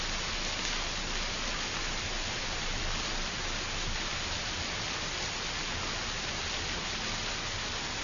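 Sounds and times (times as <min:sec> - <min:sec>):
rain: 0:00.0 - 0:08.0.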